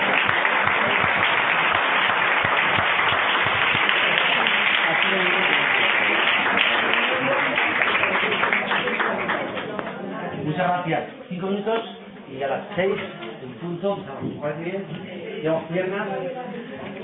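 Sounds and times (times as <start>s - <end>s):
crowd applauding: 0.0s - 10.0s
speech: 10.8s - 16.4s.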